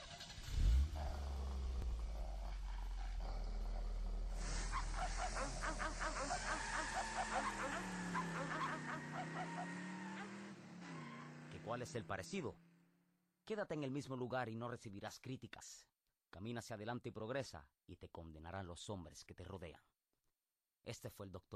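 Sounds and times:
car engine starting and idling: 0.0s - 11.6s
loud animal cries: 4.4s - 10.4s
speech: 11.7s - 12.6s, 13.5s - 19.9s, 20.8s - 21.5s.

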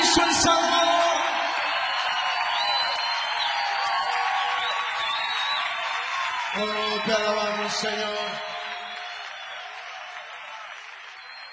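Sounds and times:
audience applause: 0.0s - 11.5s
speech: 7.0s - 8.5s.

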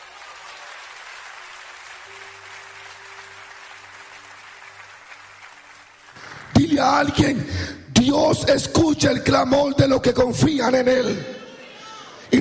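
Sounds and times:
audience applause: 0.0s - 7.3s
speech: 6.6s - 11.4s.

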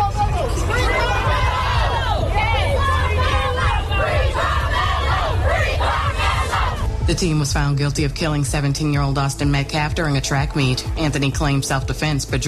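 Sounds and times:
crowd yelling and shouting outside courthouse after verdict: 0.0s - 7.0s
low rumble: 0.0s - 12.1s
speech: 7.2s - 12.4s.

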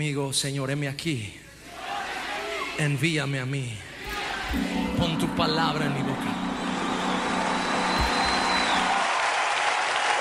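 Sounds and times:
speech: 0.0s - 1.4s, 2.8s - 6.3s
audience applause: 6.4s - 10.1s.

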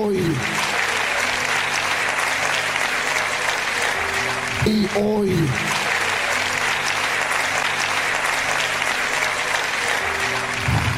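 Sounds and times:
audience applause: 0.0s - 10.9s
speech: 4.6s - 5.8s.

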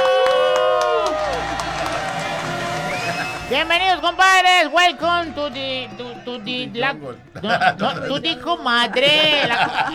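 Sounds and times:
audience applause: 0.0s - 5.9s
audience cheering and whooping: 0.0s - 6.6s
speech: 3.5s - 9.9s
laughter: 5.5s - 9.9s.

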